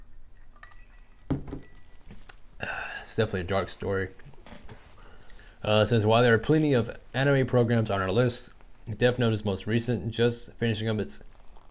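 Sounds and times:
glass clinking: 0:00.0 - 0:02.2
speech: 0:03.2 - 0:04.2, 0:05.6 - 0:11.3
person sipping a drink: 0:11.2 - 0:11.6.

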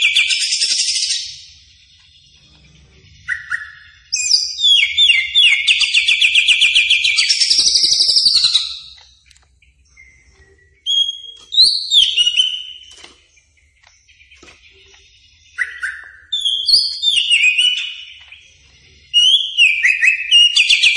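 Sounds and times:
greater green leafbird song: 0:00.0 - 0:20.9.

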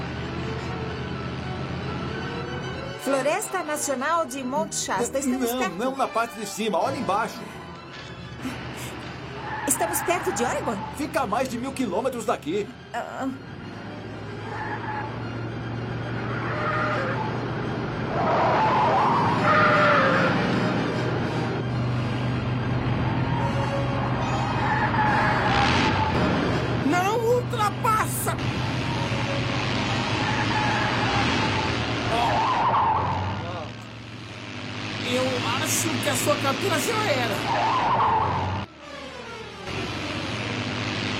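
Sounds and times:
car engine roaring in a film chase scene: 0:00.0 - 0:03.0, 0:07.1 - 0:41.1
tyres skidding in a film chase scene: 0:00.0 - 0:41.1
dubbed film dialogue: 0:03.0 - 0:07.6, 0:09.6 - 0:13.5, 0:26.8 - 0:28.6, 0:31.6 - 0:37.6
speech: 0:03.1 - 0:07.6, 0:09.8 - 0:13.5.

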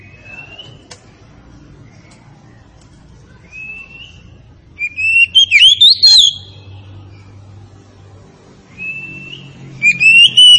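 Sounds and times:
Oriental magpie-robin song: 0:00.0 - 0:00.8, 0:03.4 - 0:07.3, 0:08.7 - 0:10.5.

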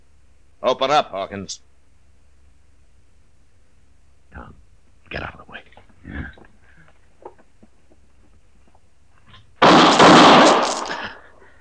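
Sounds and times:
speech: 0:00.6 - 0:01.7, 0:05.1 - 0:05.4
gunshots: 0:09.6 - 0:11.2.

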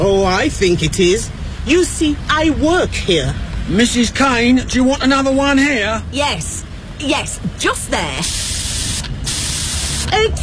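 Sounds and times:
speech: 0:00.1 - 0:08.5, 0:10.1 - 0:10.4
spray paint can spraying onto pavement outside an office: 0:08.2 - 0:10.1.

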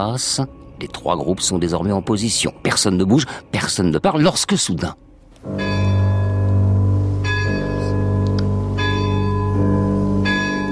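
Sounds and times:
speech: 0:00.0 - 0:05.7
large castle clock striking midnight: 0:05.5 - 0:10.7.

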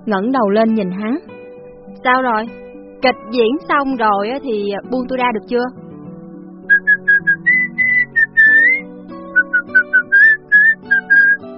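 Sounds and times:
speech: 0:00.0 - 0:01.3, 0:01.9 - 0:05.8
soft low melody: 0:00.0 - 0:11.5
man idly whistling a wandering tune: 0:06.7 - 0:11.5.

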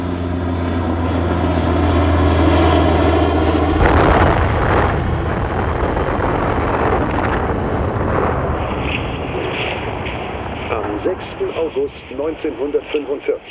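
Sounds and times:
American aircraft engine droning over Hiroshima: 0:00.0 - 0:13.4
atomic bomb explosion over Hiroshima with long heavy rumble: 0:03.7 - 0:13.1
speech: 0:11.1 - 0:13.4.

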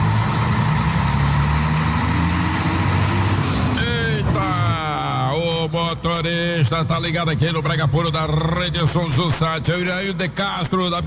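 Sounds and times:
bus pulling away: 0:00.0 - 0:06.0
speech: 0:06.0 - 0:11.0.

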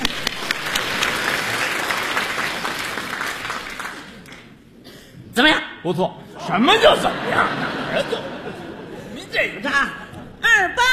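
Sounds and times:
audience applause: 0:00.0 - 0:04.5
speech: 0:05.4 - 0:08.4, 0:09.3 - 0:10.0
laughter: 0:06.4 - 0:10.6.

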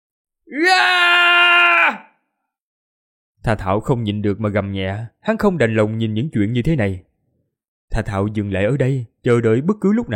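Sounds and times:
speech: 0:00.5 - 0:01.0, 0:03.4 - 0:07.1, 0:07.9 - 0:10.1
young girl wailing and crying: 0:00.5 - 0:02.1.

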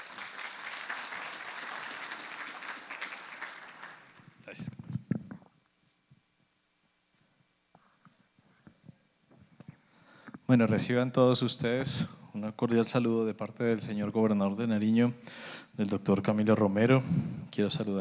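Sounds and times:
applause at an international peace gathering at a university: 0:00.0 - 0:04.6
speech: 0:10.5 - 0:17.9.

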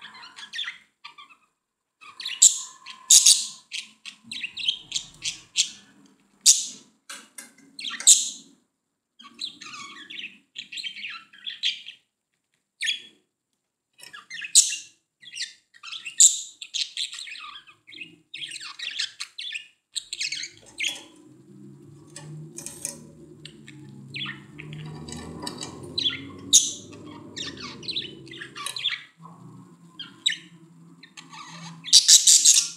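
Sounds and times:
budgerigar chirping and warbling: 0:00.0 - 0:06.9, 0:07.6 - 0:08.6, 0:09.2 - 0:12.0, 0:14.0 - 0:32.7
low steady hum: 0:20.4 - 0:31.9.

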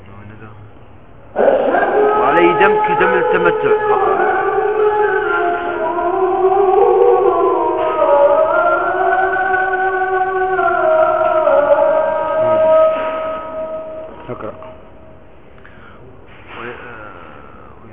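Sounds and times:
police siren passing outside: 0:01.4 - 0:14.8
speech: 0:02.6 - 0:04.2.

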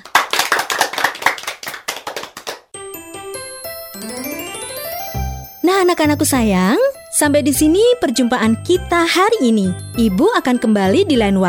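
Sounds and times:
applause for children in a preschool music lesson: 0:00.0 - 0:02.7
bright chiming tones with a rising sweep: 0:03.3 - 0:07.1
speech: 0:05.7 - 0:11.4.

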